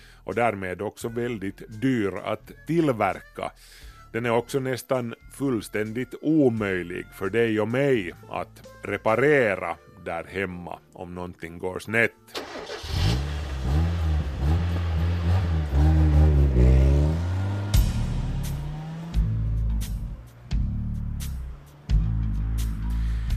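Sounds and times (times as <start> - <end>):
speech: 0.2 - 12.7
petrol car engine starting and running: 12.3 - 23.3.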